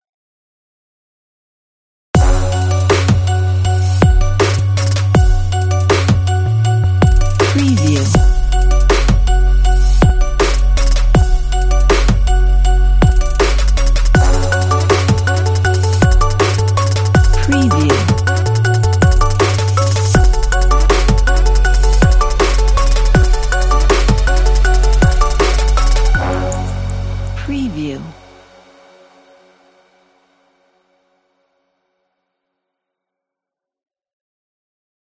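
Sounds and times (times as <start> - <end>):
heavy trap music: 2.2 - 28.3.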